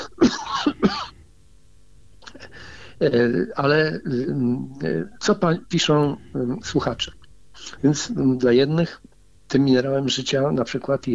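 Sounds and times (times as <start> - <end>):
man clearing his throat: 0.0 - 1.2
speech: 3.0 - 11.1.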